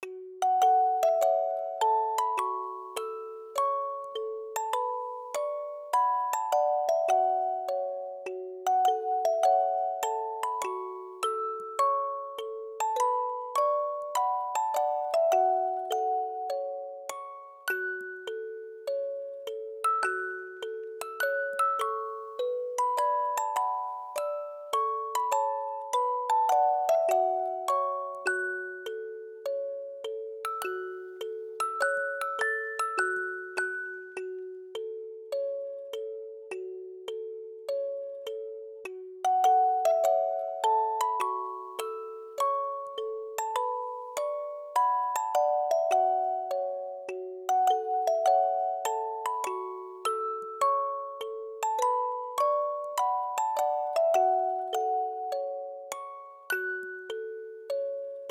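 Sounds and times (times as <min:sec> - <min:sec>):
music box: 0:00.0 - 0:58.2.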